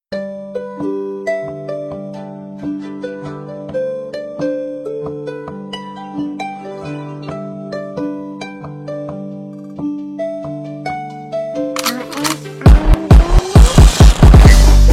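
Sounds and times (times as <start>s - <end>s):
phonk remix of a Samsung alarm tone: 11.9s - 14.8s.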